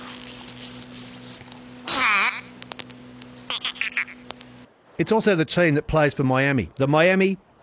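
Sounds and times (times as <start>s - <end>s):
dolphin whistles and clicks: 0.0s - 2.6s, 3.2s - 4.4s
steady low hum: 0.0s - 5.0s
speech: 5.0s - 7.5s.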